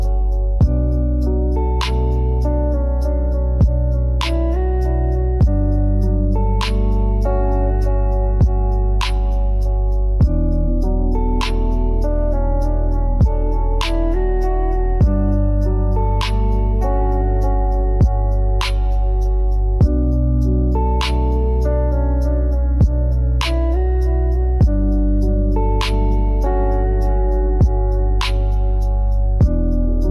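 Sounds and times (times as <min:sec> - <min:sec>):
ocean-themed lofi music: 0:00.0 - 0:30.0.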